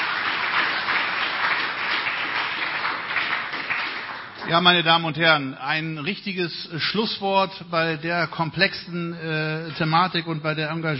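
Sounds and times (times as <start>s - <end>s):
audience applause: 0.0s - 4.9s
speech: 4.5s - 10.9s.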